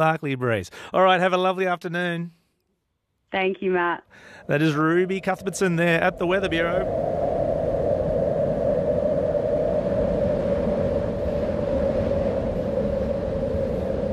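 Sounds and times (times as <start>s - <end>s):
speech: 0.0s - 2.4s, 3.3s - 7.1s
wind blowing: 4.1s - 14.1s.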